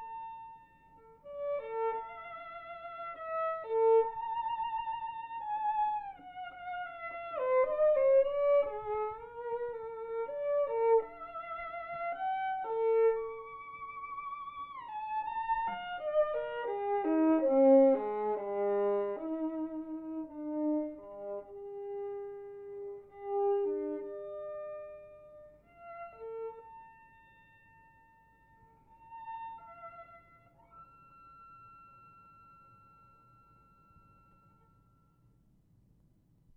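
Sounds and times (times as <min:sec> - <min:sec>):
violin duet: 0:00.0 - 0:28.1.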